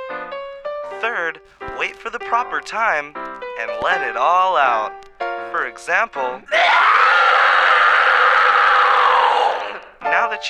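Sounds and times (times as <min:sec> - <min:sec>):
speech: 0:01.0 - 0:06.7, 0:10.1 - 0:10.4
person screaming as a demonstration: 0:06.5 - 0:09.9.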